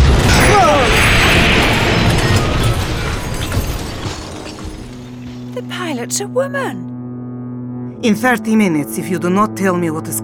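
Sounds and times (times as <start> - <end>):
explosion as German panzer tanks blow up the TARDIS: 0.0 - 5.5
speech: 6.1 - 6.9, 8.0 - 10.2.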